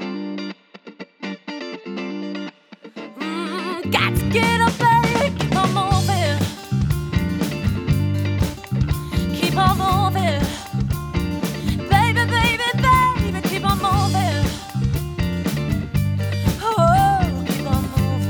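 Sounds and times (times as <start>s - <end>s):
live five-piece band playing: 4.1s - 18.2s.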